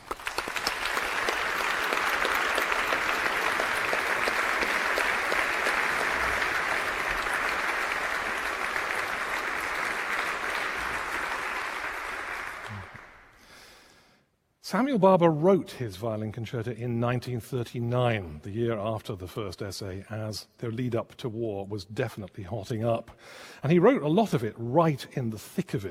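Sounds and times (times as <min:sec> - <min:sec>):
concert audience applause welcoming a violin soloist: 0:00.0 - 0:13.4
speech: 0:14.7 - 0:25.8.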